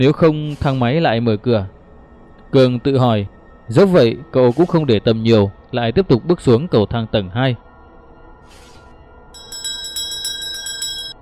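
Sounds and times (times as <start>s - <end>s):
speech: 0.0s - 1.8s, 2.5s - 7.6s
bracelet jingling: 9.4s - 11.2s.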